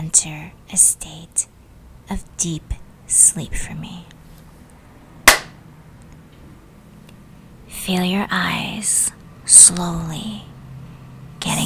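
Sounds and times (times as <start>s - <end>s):
speech: 0.0s - 4.2s, 7.9s - 10.5s
single hand clap: 5.3s - 5.6s.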